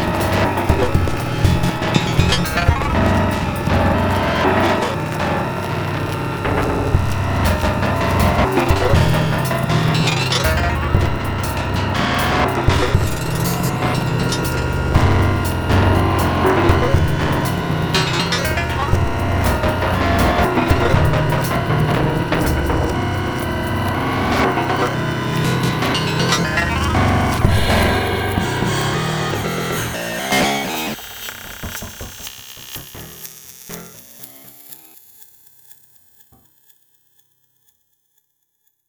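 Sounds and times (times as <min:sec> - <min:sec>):
tense one-note drone: 0:00.0 - 0:31.0.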